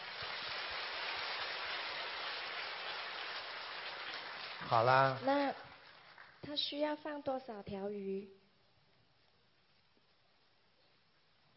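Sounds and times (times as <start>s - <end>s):
crowd applauding: 0.0s - 6.5s
speech: 4.6s - 5.7s, 6.4s - 8.4s.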